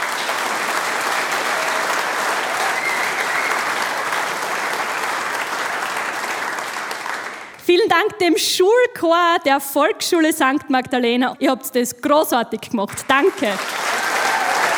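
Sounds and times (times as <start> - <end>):
audience applause: 0.0 - 7.6, 13.2 - 14.7
speech: 7.7 - 13.8.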